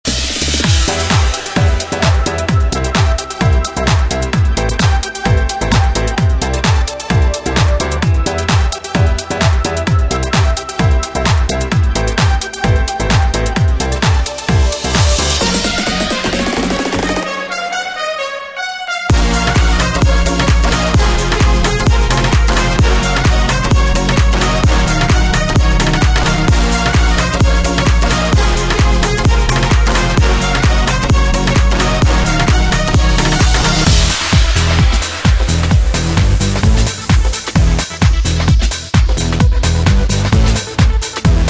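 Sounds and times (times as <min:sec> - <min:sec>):
pop EDM anthems: 0:00.1 - 0:41.4.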